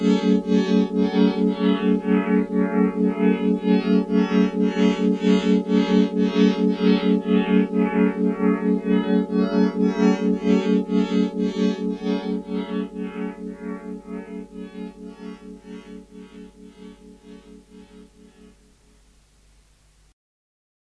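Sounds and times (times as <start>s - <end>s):
synthesizer pads: 0.0s - 19.8s.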